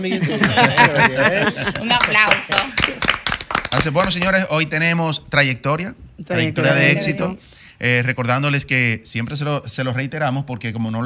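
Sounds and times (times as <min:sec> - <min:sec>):
laughter: 0:00.0 - 0:02.0
speech: 0:00.0 - 0:03.1, 0:03.7 - 0:11.0
lively voices: 0:00.0 - 0:04.3, 0:06.2 - 0:07.6
audience clapping: 0:00.4 - 0:04.4.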